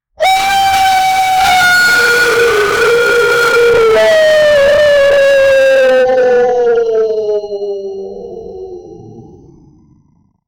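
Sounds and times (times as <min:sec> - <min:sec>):
alarmed beast call: 0:00.2 - 0:08.6.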